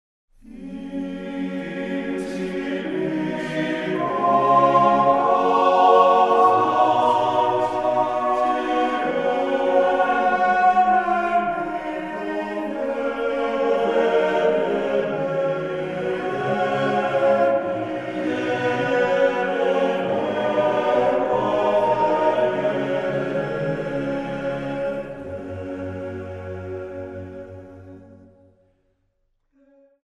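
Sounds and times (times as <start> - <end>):
boys' choir singing: 0.4 - 27.9.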